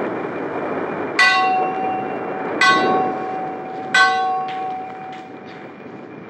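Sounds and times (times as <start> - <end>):
rushing wind and water: 0.0 - 5.5
ship's mast bell ringing in fog: 1.2 - 5.9.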